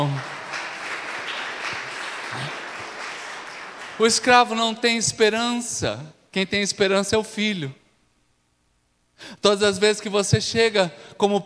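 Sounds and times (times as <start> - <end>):
audience applauding: 0.0 - 4.8
speech: 4.0 - 7.8, 9.2 - 11.4.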